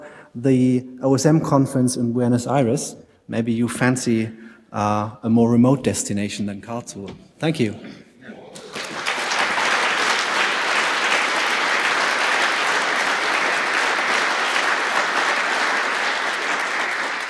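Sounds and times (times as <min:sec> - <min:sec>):
speech: 0:00.4 - 0:08.0
audience applause: 0:08.6 - 0:17.2.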